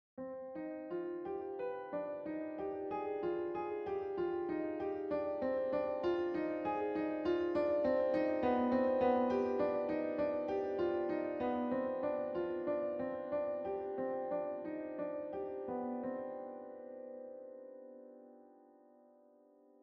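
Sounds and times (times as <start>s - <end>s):
piano: 0.2s - 19.8s.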